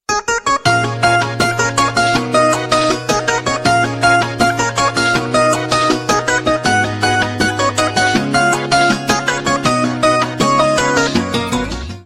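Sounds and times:
ringtone: 0.1 - 11.9.

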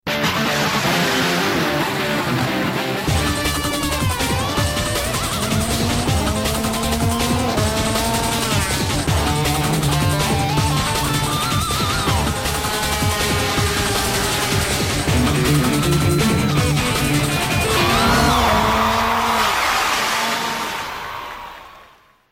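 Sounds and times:
theme song: 0.1 - 20.2.

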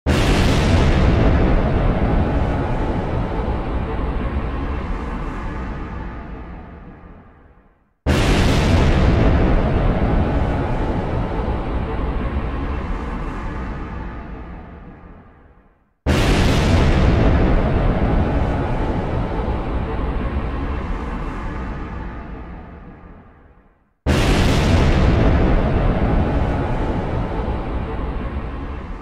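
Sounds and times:
loud thunder: 0.1 - 5.6, 8.1 - 13.9, 16.1 - 21.8, 24.1 - 29.0.

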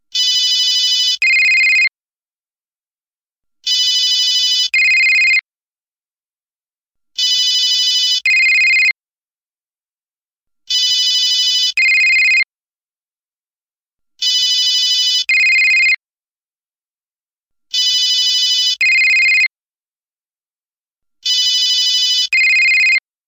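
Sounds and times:
classic cell phone ringing: 0.2 - 1.9, 3.6 - 5.4, 7.2 - 9.0, 10.7 - 12.4, 14.2 - 16.0, 17.7 - 19.5, 21.2 - 23.0.

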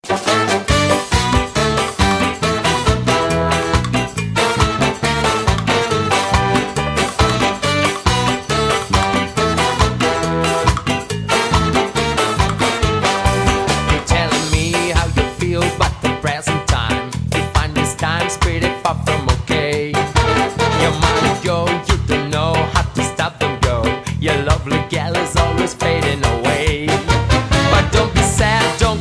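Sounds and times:
jazz music: 0.0 - 29.0.

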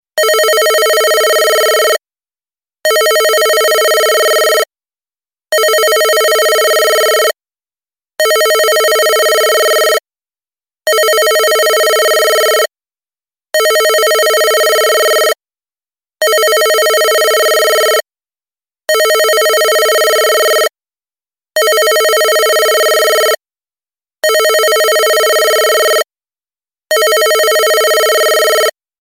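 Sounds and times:
old phone ringing: 0.2 - 2.0, 2.9 - 4.7, 5.5 - 7.4, 8.2 - 10.0, 10.9 - 12.7, 13.6 - 15.4, 16.2 - 18.0, 18.9 - 20.7, 21.6 - 23.4, 24.2 - 26.1, 26.9 - 28.8.

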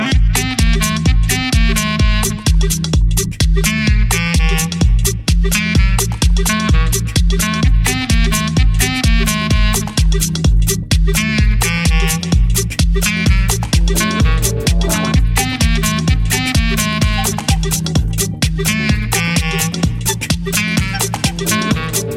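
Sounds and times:
klezmer music: 0.0 - 22.1.

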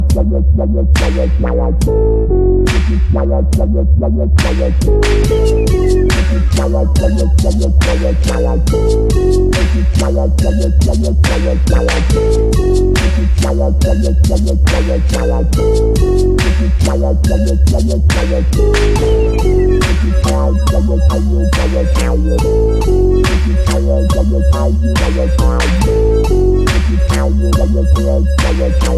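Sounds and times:
dubstep instrumental: 0.0 - 28.9.

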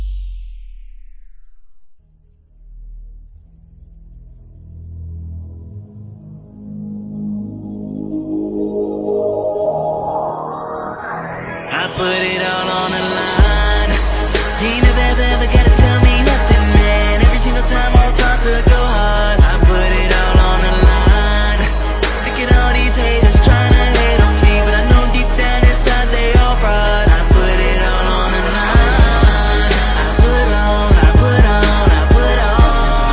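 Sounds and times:
instrumental hip hop rap beat with hook: 8.0 - 33.1.

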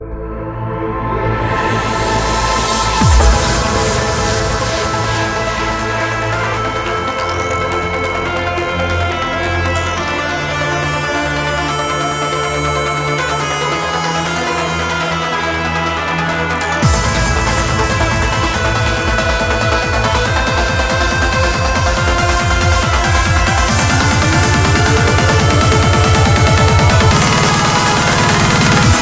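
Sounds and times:
trance music: 0.0 - 29.0.

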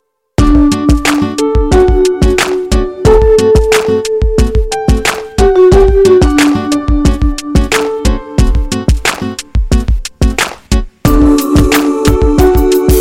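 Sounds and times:
jazz drum beat: 0.4 - 12.9.

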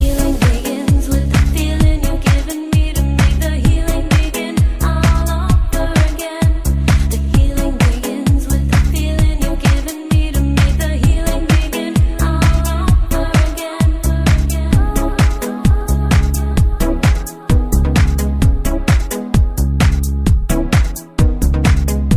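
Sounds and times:
club music: 0.0 - 22.1.

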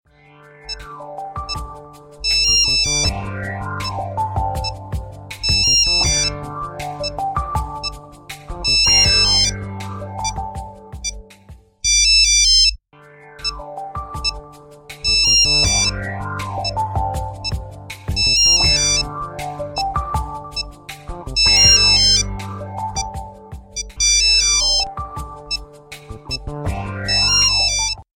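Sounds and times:
phone ringtone: 0.7 - 4.8, 5.4 - 8.0, 8.6 - 9.6, 10.2 - 10.4, 11.8 - 12.8, 13.4 - 14.4, 15.0 - 20.7, 21.4 - 23.2, 23.8 - 25.7, 26.3 - 28.1.

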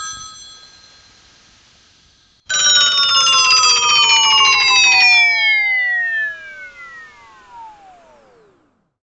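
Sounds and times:
old-school dying tone: 2.5 - 8.3.

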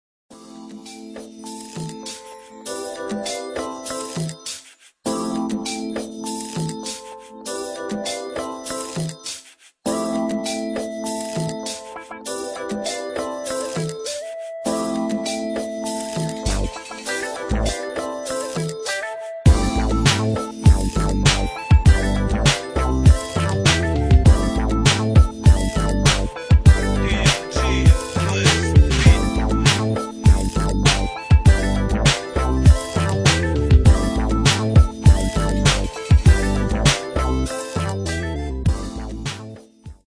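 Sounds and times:
G-funk instrumental: 0.6 - 40.0
blast beat drums: 19.5 - 32.9, 33.7 - 37.0.

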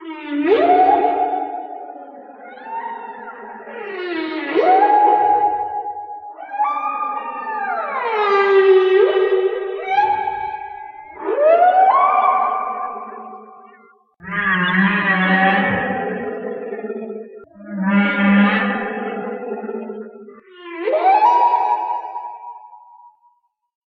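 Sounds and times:
whale calls: 0.0 - 23.2.

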